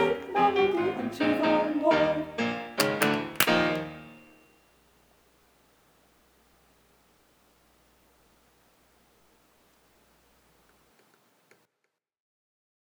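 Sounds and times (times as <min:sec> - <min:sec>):
vocals: 0:00.0 - 0:04.2.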